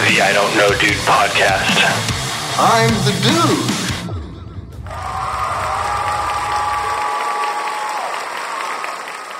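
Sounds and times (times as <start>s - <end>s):
speech: 0.1s - 3.7s
applause sound effect: 4.9s - 9.3s.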